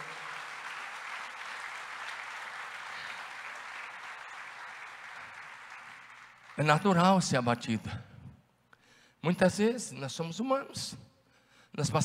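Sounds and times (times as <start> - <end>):
large crowd applauding: 0.0 - 7.0
speech: 6.6 - 8.1, 9.2 - 11.1, 11.8 - 12.0.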